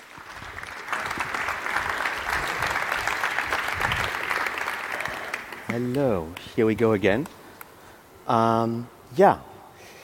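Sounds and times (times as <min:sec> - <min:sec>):
audience applause: 0:00.0 - 0:06.1
speech: 0:05.7 - 0:07.4, 0:08.3 - 0:09.5.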